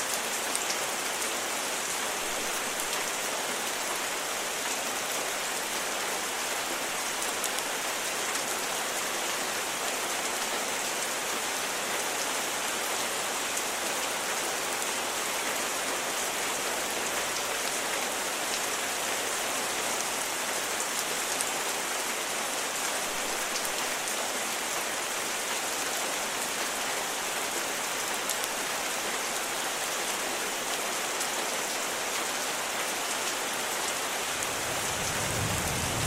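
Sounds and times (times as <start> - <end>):
rain storm: 0.0 - 36.0
thunder: 34.6 - 36.0.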